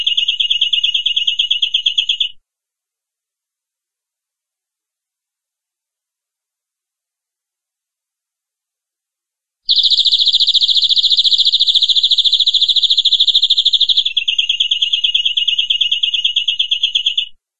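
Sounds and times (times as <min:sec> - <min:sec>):
domestic canary giving long rolling song: 0:00.0 - 0:02.4, 0:09.7 - 0:17.4.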